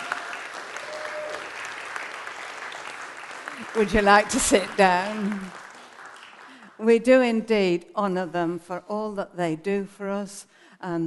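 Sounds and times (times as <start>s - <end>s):
audience clapping: 0.0s - 6.8s
speech: 3.7s - 5.6s, 6.8s - 11.0s.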